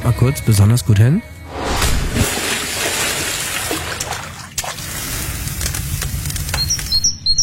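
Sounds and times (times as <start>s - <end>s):
speech: 0.2s - 1.6s
splashing at an open-air pool: 1.6s - 5.0s
birds chirping in summer: 6.5s - 7.4s.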